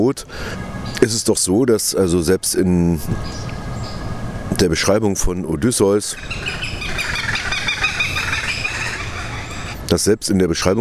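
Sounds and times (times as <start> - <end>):
speech: 0.0 - 3.6, 4.6 - 6.7, 9.9 - 10.8
low rumble: 0.0 - 10.8
goshawk calling during an attack: 6.0 - 9.9.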